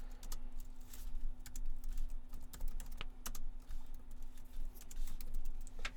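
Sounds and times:
typing on a computer keyboard: 0.0 - 5.9.

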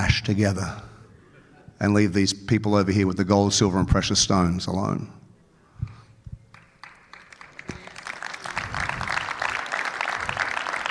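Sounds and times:
speech: 0.1 - 0.9, 1.8 - 5.2
nervous scattered clapping from audience: 6.4 - 10.8.

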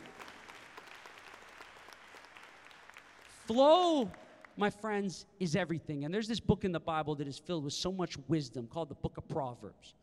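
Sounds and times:
audience applause: 0.0 - 4.6
speech: 3.5 - 10.0.

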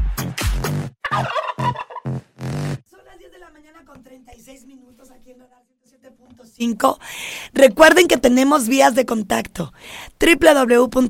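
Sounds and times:
turkey gobbling: 1.0 - 2.1
speech: 4.3 - 11.0.

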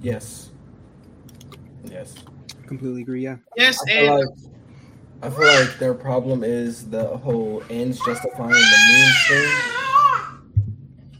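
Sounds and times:
speech: 0.0 - 0.6, 1.8 - 4.6, 5.2 - 9.8
young daughter screaming: 5.3 - 5.9, 8.0 - 10.4.

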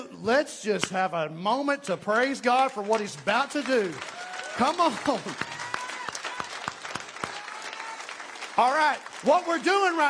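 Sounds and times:
speech: 0.2 - 5.6, 8.6 - 10.0
audience applauding: 2.5 - 10.0.

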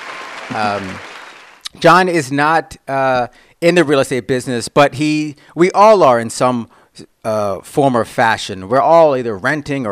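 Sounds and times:
applause sound effect: 0.0 - 1.7
speech: 0.5 - 1.1, 1.7 - 9.9.

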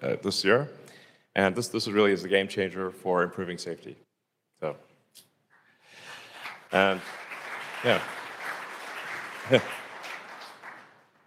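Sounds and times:
speech: 0.0 - 5.3, 6.7 - 7.2, 7.8 - 8.2, 9.5 - 9.8
audience clapping after slide: 5.9 - 11.2.

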